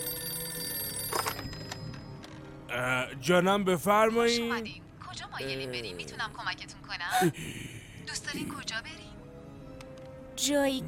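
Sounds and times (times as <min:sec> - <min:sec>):
telephone ringing in a corner: 0:00.0 - 0:02.6
speech: 0:02.7 - 0:09.1, 0:10.4 - 0:10.8.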